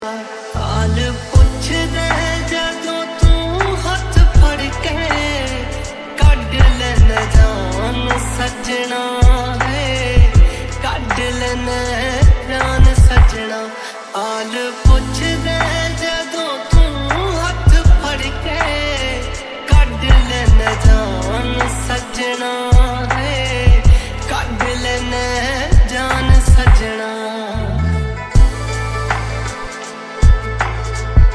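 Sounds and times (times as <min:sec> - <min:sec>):
Punjabi song: 0:00.0 - 0:31.3.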